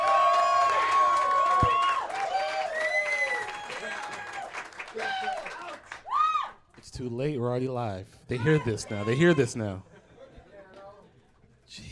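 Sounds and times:
live audience clapping and cheering: 0.0 - 6.7
speech: 7.0 - 9.9.

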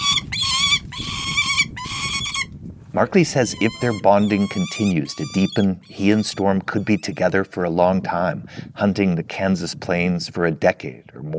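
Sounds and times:
hawk making contented squealing chatter while eating: 0.0 - 2.5, 3.2 - 7.4
speech: 3.0 - 11.3.

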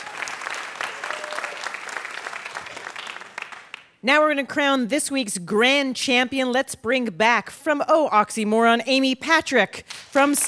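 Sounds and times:
applause: 0.0 - 4.0
speech: 4.0 - 10.4.

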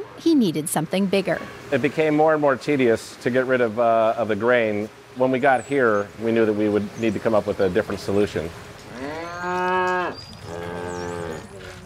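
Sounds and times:
speech: 0.2 - 8.7
cow mooing: 8.9 - 11.8.

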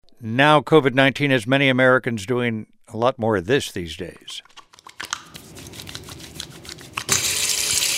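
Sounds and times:
speech: 0.2 - 4.5
hands rubbing while washing at a sink: 4.4 - 7.8
water running from a tap at a sink: 5.2 - 7.9.

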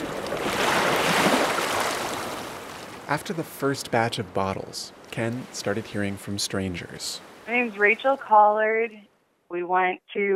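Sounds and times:
waves at a breakwater seawall: 0.0 - 8.1
speech: 3.1 - 10.3.

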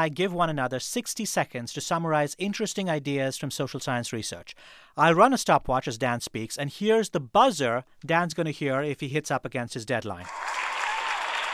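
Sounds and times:
speech: 0.0 - 10.8
crowd applause: 10.2 - 11.5.

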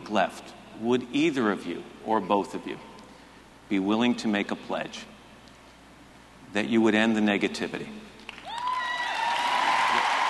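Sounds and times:
speech: 0.1 - 2.9, 3.7 - 5.1, 6.5 - 8.1
political debate audience clapping: 8.3 - 10.2
long high held whoop: 8.4 - 10.2.

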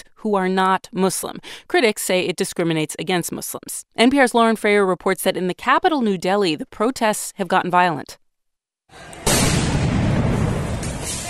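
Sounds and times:
speech: 0.2 - 8.2, 8.9 - 9.2
loud boom of police firing tear gas into a university campus in New Delhi: 9.2 - 11.2.

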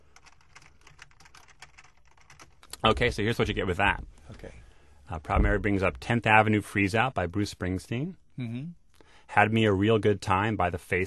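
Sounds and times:
typing on a computer keyboard: 0.1 - 2.8
speech: 2.8 - 11.0.

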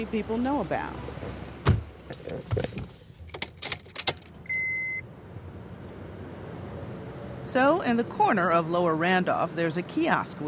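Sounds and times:
speech: 0.0 - 1.4, 2.3 - 2.9, 7.5 - 10.4
car engine rumble: 0.0 - 10.4
car door clicks and clunks: 1.1 - 4.4
keys jangling: 3.1 - 4.4
short electronic beep: 4.5 - 5.1.

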